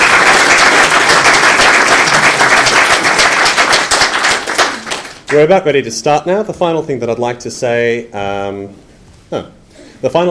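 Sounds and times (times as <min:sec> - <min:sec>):
audience applause for speakers: 0:00.0 - 0:05.4
speech: 0:05.3 - 0:10.2.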